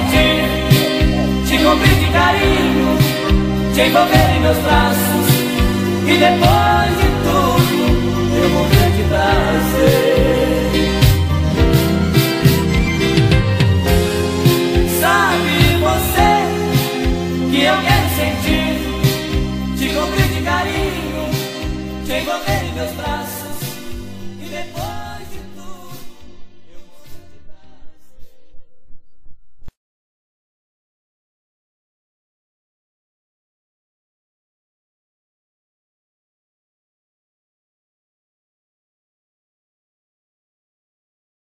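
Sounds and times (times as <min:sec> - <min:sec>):
classic sertanejo music: 0:00.0 - 0:26.8.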